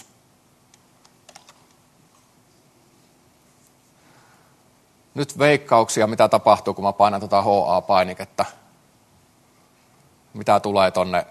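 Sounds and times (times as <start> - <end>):
soft hiss: 0.0 - 11.3
typing code on a computer keyboard: 0.7 - 1.8
speech: 5.2 - 8.6, 10.3 - 11.3.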